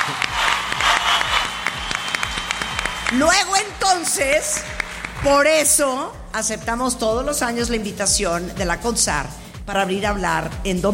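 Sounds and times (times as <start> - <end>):
audience applause: 0.0 - 5.2
speech: 3.1 - 10.9.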